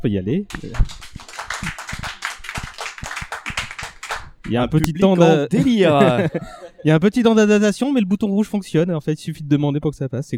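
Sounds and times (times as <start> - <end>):
speech: 0.0 - 1.8, 4.5 - 10.3
small audience applause: 0.5 - 5.4
laughter: 4.9 - 7.1.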